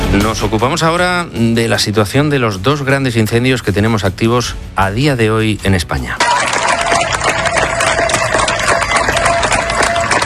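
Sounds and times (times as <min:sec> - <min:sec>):
speech: 0:00.2 - 0:06.4
neighbours applauding firefighting emergency crews: 0:06.2 - 0:10.2.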